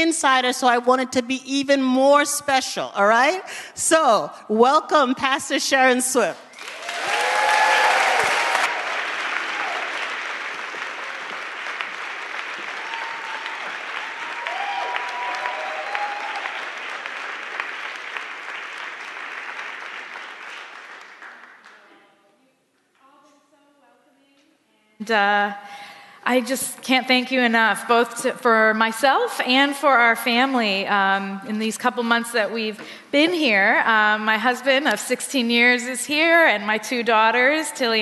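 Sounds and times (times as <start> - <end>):
speech: 0.0 - 7.1, 25.1 - 25.6, 26.3 - 38.0
church congregation applause welcoming a pastor: 6.5 - 22.0.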